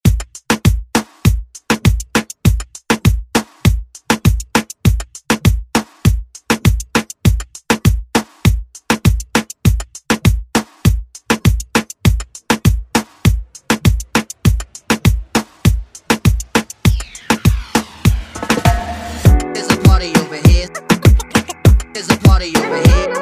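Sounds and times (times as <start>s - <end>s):
moombahton music: 0.0s - 23.2s.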